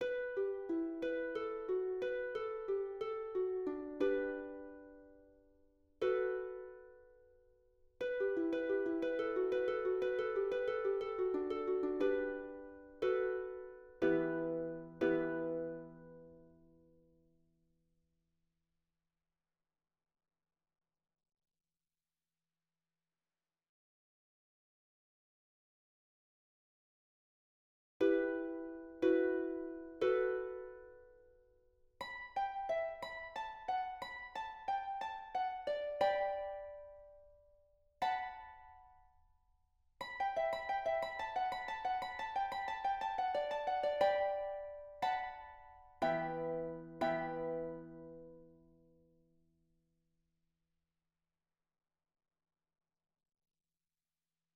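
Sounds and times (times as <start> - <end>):
harp: 0.0 - 16.9, 28.0 - 31.4, 32.0 - 39.1, 40.0 - 49.0.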